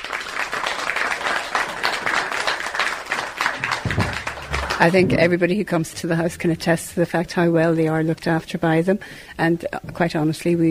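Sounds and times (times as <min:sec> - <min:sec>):
audience applause: 0:00.0 - 0:05.3
speech: 0:04.8 - 0:10.7.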